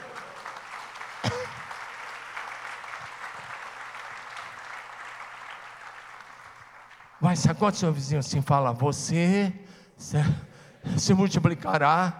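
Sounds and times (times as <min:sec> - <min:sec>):
audience clapping: 0:00.0 - 0:07.9
speech: 0:07.2 - 0:12.1.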